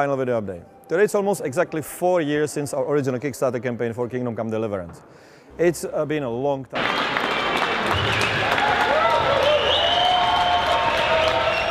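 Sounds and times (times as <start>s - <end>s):
speech: 0.0s - 7.2s
crowd applause at the Kingdom Come Deliverance launch party: 6.8s - 11.6s.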